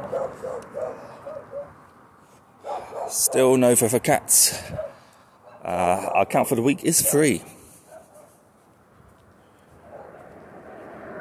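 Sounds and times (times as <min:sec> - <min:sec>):
dog barking: 0:00.0 - 0:01.7, 0:02.6 - 0:03.5, 0:04.7 - 0:05.7, 0:07.9 - 0:08.3, 0:09.9 - 0:10.2
speech: 0:03.1 - 0:04.9, 0:05.6 - 0:07.6.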